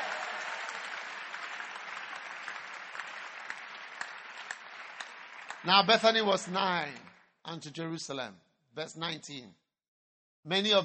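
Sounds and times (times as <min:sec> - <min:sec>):
crowd clapping: 0:00.0 - 0:07.3
speech: 0:05.6 - 0:09.6, 0:10.4 - 0:10.8.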